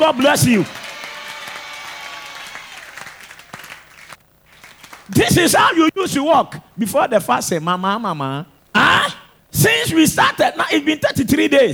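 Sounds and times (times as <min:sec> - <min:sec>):
speech: 0:00.0 - 0:00.8, 0:05.1 - 0:11.7
audience clapping: 0:00.0 - 0:05.9.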